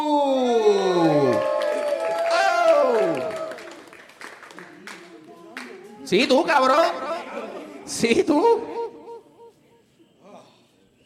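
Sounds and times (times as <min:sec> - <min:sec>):
audience applause: 0:01.1 - 0:07.7
laughter: 0:04.5 - 0:09.6
speech: 0:06.1 - 0:07.1, 0:07.9 - 0:08.8.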